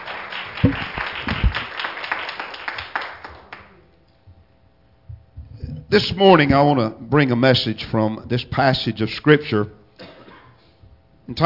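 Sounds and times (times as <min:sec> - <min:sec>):
audience hand clapping: 0:00.0 - 0:03.8
speech: 0:00.6 - 0:00.9, 0:05.9 - 0:09.8, 0:11.3 - 0:11.4.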